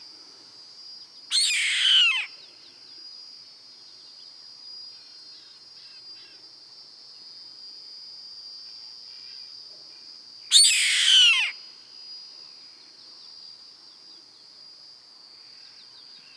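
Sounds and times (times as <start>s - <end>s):
bird rasping screech: 1.3s - 2.3s, 10.5s - 11.5s.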